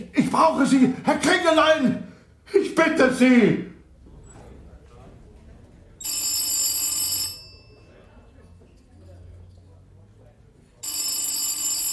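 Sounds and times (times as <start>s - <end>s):
speech: 0.0s - 3.7s
old-fashioned telephone bell ringing: 6.0s - 8.0s, 10.8s - 11.9s.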